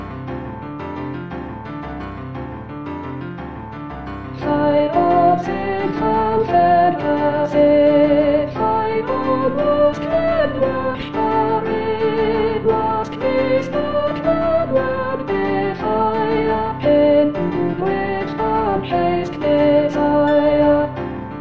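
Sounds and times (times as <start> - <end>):
soprano singing: 4.4 - 21.3.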